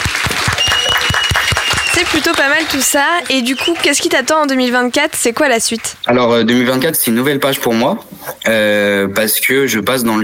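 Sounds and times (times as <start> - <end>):
audience applause: 0.0 - 4.9
speech: 2.1 - 10.2.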